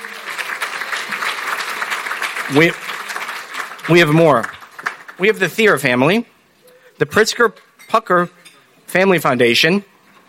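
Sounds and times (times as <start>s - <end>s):
audience applause: 0.0s - 5.6s
speech: 2.5s - 2.9s, 3.9s - 4.6s, 5.2s - 6.3s, 7.0s - 9.9s.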